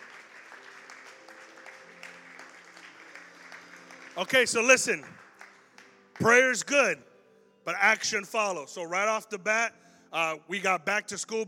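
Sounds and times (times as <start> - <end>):
audience clapping hands in praise: 0.0 - 6.7
speech: 4.2 - 5.2, 6.2 - 7.1, 7.7 - 11.4.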